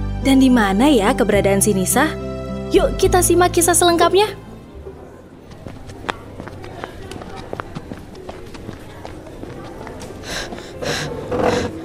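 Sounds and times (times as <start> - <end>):
speech: 0.2 - 4.4
running footsteps: 5.4 - 11.8
heavy breathy panting: 10.1 - 11.8.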